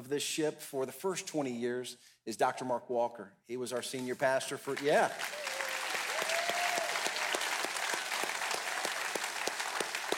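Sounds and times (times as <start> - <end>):
speech: 0.0 - 5.5
church congregation applauding during a morning service: 4.7 - 10.1.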